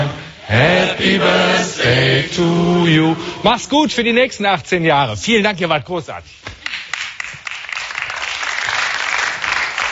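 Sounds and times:
speech: 0.1s - 6.5s
studio audience applauding: 6.6s - 9.9s.

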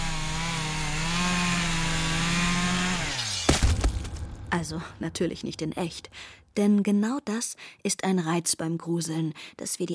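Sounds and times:
chainsaw running: 0.0s - 4.5s
speech: 4.5s - 9.9s.

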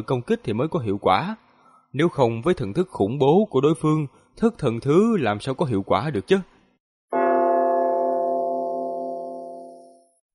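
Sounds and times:
speech: 0.0s - 6.5s
bell-like clang of a collision: 7.2s - 10.2s.

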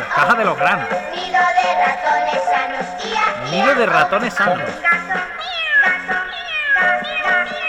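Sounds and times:
speech: 0.2s - 5.2s
cat meowing: 3.0s - 7.6s.

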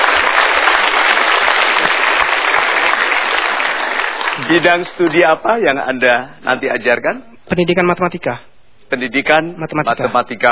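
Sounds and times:
studio audience applause: 0.0s - 5.1s
speech: 4.5s - 10.4s.

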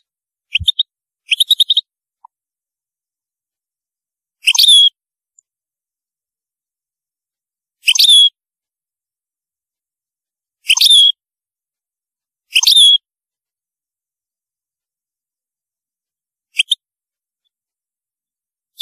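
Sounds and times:
European goldfinch calls: 0.5s - 1.9s, 4.4s - 4.9s, 7.8s - 8.3s, 10.6s - 11.2s, 12.5s - 13.0s.

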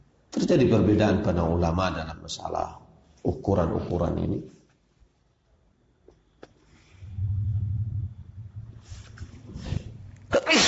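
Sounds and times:
speech: 0.5s - 4.6s
low rumbling murmur: 7.0s - 10.2s
sneeze: 10.3s - 10.6s.

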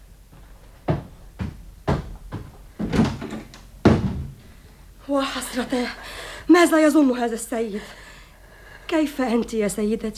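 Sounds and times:
wooden door handled and shut: 0.9s - 4.4s
speech: 5.1s - 8.0s, 8.9s - 10.1s.

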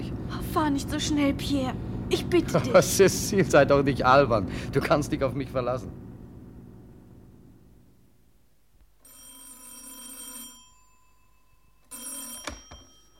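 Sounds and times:
speech: 0.5s - 6.0s
telephone ringing at a car repair garage: 9.0s - 13.1s
telephone receiver picked up: 12.3s - 13.1s.

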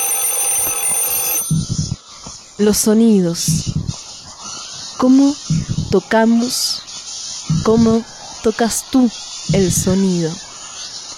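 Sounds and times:
high-pitched telephone ringing tone: 0.0s - 1.9s
speech: 2.6s - 3.7s, 5.0s - 6.9s, 7.6s - 10.5s.

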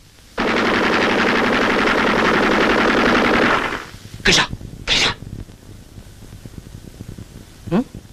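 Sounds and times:
machine gun fire: 0.4s - 5.2s
speech: 4.2s - 4.6s.

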